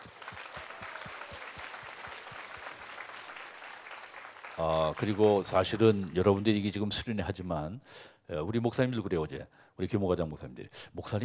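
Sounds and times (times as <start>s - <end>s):
audience applause: 0.0s - 6.5s
speech: 4.6s - 11.2s.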